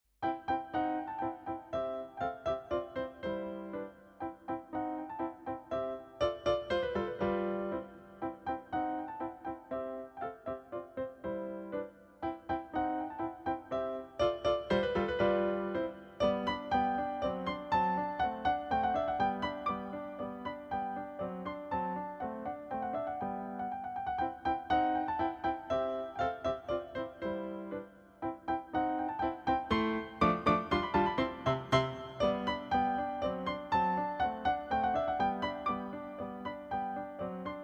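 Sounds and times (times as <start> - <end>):
piano piece: 0.2 - 37.6.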